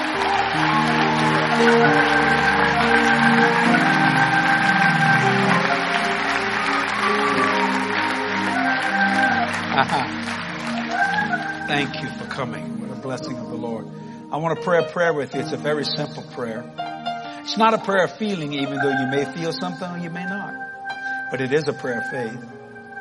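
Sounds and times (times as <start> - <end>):
audience applause: 0.0 - 12.4
speech: 1.6 - 2.2, 9.8 - 10.4, 11.7 - 16.8, 17.5 - 20.7, 21.3 - 22.6.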